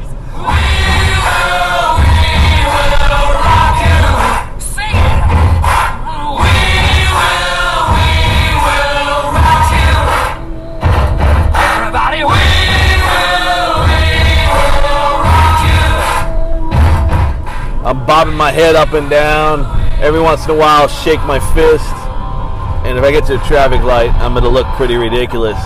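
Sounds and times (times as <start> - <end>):
stomp-clap rock song with sung vocals: 0.5 - 17.9
speech: 18.4 - 22.0, 23.0 - 25.6.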